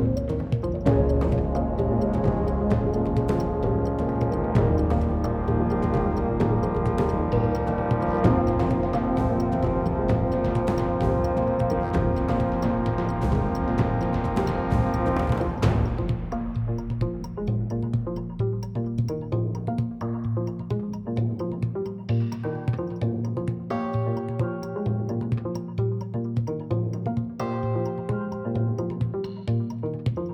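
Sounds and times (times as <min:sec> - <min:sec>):
rhythm loop: 0:00.0 - 0:30.3.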